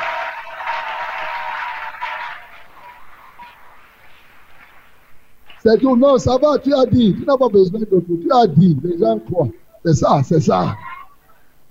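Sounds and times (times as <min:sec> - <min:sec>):
congregation applauding and cheering during a sermon: 0:00.0 - 0:09.0
speech: 0:05.6 - 0:10.9.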